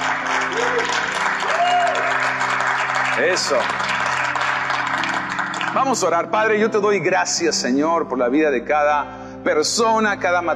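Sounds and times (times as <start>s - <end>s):
loud applause from a large crowd: 0.0s - 6.3s
speech: 3.2s - 3.9s, 5.8s - 10.5s.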